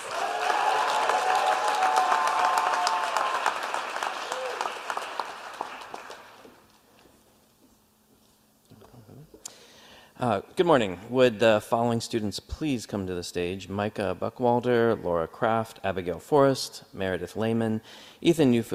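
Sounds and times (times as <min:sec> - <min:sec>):
audience applause: 0:00.0 - 0:06.7
speech: 0:10.2 - 0:18.7.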